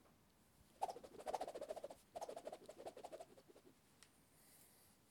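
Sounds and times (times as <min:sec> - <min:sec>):
karate stick swinging swoosh: 0:00.8 - 0:03.6.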